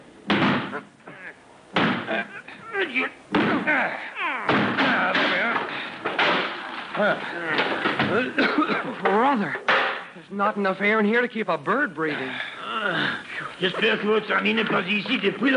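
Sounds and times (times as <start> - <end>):
shoulder ramming a locked door: 0.3 - 0.8, 1.7 - 2.2, 3.3 - 3.8, 4.4 - 6.6
speech: 0.7 - 1.4, 2.1 - 5.4, 7.0 - 15.5
people grunting: 0.7 - 9.8, 12.2 - 14.8.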